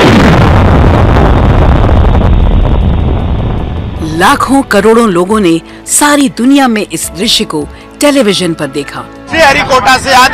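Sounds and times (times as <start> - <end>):
thunderous roar of Aditya L1 rocket launch: 0.0 - 4.1
speech: 4.2 - 10.3.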